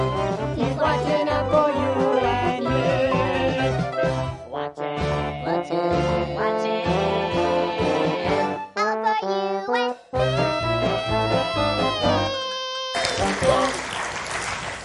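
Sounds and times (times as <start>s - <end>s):
sung melody with accompaniment: 0.0s - 13.8s
small group clapping: 12.9s - 14.8s.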